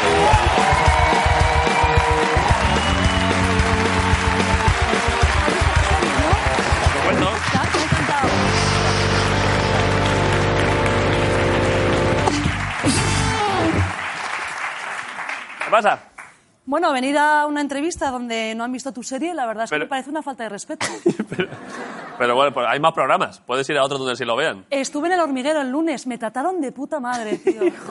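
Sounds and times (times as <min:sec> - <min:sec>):
audience applause: 0:00.0 - 0:16.4
speech: 0:15.8 - 0:16.1, 0:16.7 - 0:27.8
laughter: 0:20.8 - 0:22.4, 0:27.2 - 0:27.8.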